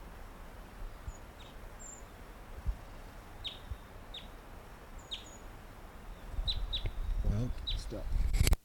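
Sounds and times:
wild bird singing: 0.7 - 2.2, 3.4 - 8.0.

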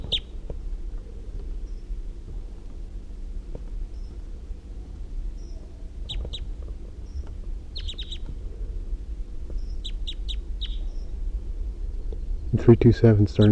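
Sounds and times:
male wild bird calling with high-pitched chirps: 0.0 - 0.4, 1.6 - 2.0, 3.8 - 4.3, 5.3 - 8.3, 9.4 - 11.2
low hum: 0.0 - 13.4
speech: 12.6 - 13.4.

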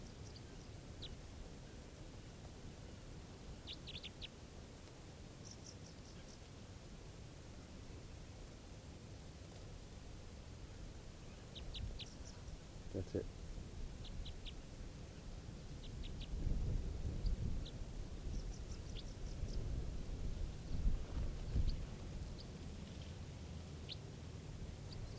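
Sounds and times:
bird calling in short high-pitched chirps: 0.0 - 1.2, 3.6 - 4.4, 5.4 - 6.5, 11.2 - 13.3, 14.0 - 16.4, 17.1 - 19.6, 23.8 - 24.1, 24.8 - 25.1
steady hiss: 0.0 - 25.1
speech: 13.1 - 13.4.

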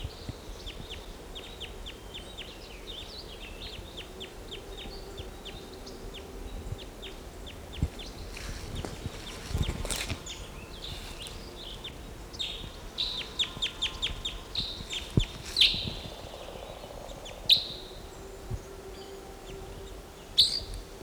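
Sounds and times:
steady low hiss: 0.0 - 21.0
bird calling from a tree: 7.0 - 21.0.

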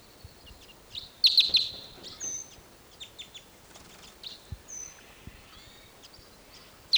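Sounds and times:
wild birds chirping: 0.0 - 6.9.

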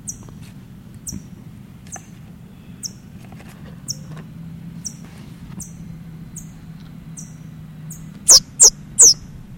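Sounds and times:
low steady rumble: 0.0 - 9.5
parrot chick squealing: 8.3 - 9.2.

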